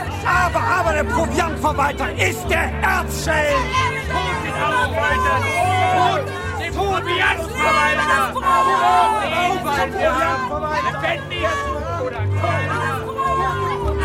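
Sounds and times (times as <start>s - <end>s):
speech: 0.5s - 12.7s
angry crowd tumult: 2.3s - 14.0s.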